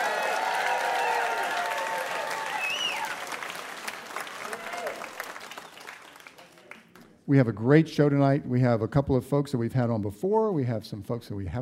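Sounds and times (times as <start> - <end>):
audience applause in the Museum of Commerce in historic Pensacola Village: 0.0 - 7.0
speech: 7.3 - 11.6.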